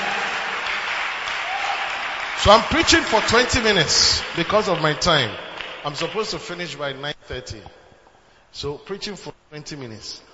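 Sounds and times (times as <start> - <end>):
audience clapping: 0.0 - 6.7
speech: 2.4 - 7.8, 8.5 - 10.3.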